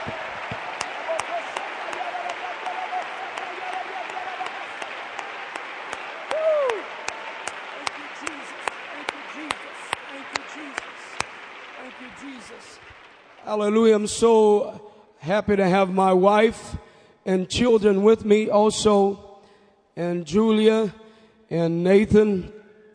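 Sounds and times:
crowd applauding: 0.0s - 14.3s
speech: 13.5s - 19.2s, 20.0s - 22.6s.

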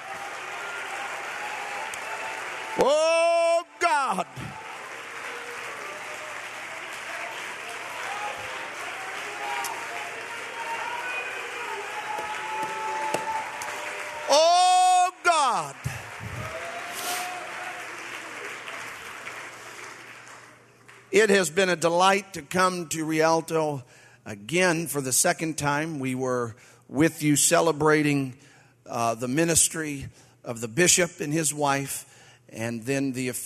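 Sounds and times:
audience clapping hands: 0.0s - 21.8s
speech: 2.8s - 3.2s, 4.2s - 4.6s, 21.2s - 33.4s.

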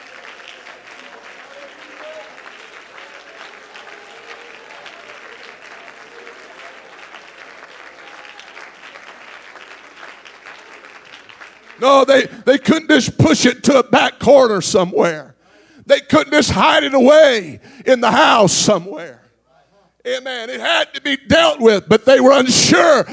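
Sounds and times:
audience clapping: 0.0s - 12.9s
speech: 11.8s - 15.3s, 15.9s - 19.2s, 20.0s - 23.1s.

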